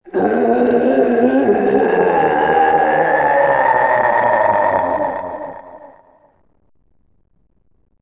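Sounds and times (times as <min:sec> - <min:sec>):
guardian roaring: 0:00.0 - 0:06.2.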